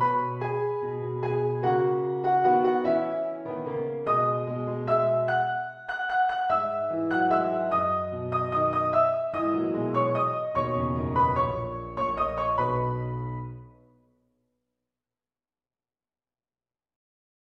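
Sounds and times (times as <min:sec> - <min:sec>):
piano vignette: 0:00.0 - 0:14.0.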